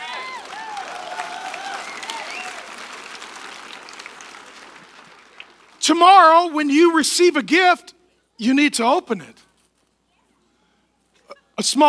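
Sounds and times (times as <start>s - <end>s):
crowd applauding: 0.0s - 6.4s
speech: 5.8s - 9.4s, 11.6s - 11.8s.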